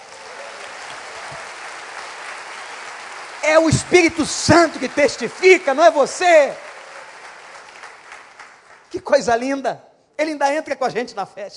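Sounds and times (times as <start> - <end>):
audience applause: 0.0 - 8.9
speech: 3.4 - 6.7, 9.0 - 11.5.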